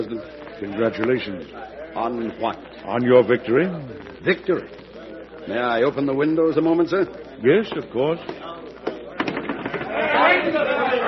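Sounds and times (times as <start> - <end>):
speech: 0.0 - 4.8, 5.5 - 8.5
crowd shouting in the streets outside: 9.5 - 11.0.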